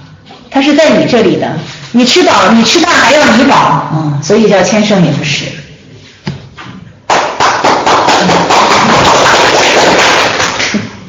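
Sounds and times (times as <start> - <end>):
speech: 0.6 - 5.6
hand clapping: 7.0 - 11.0.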